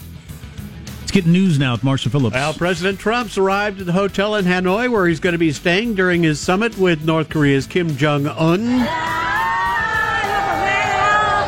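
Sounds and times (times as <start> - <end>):
speech: 1.2 - 9.2
shouts and whoops: 8.6 - 11.4
street crowd cheering: 8.6 - 11.4.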